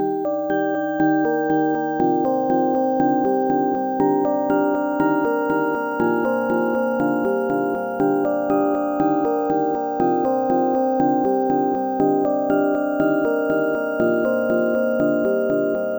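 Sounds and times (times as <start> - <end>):
music box melody: 0.0 - 15.9.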